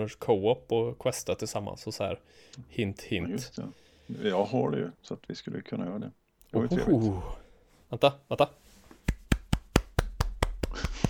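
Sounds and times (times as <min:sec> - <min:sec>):
speech: 0:00.0 - 0:08.6
hand clapping: 0:09.0 - 0:11.0.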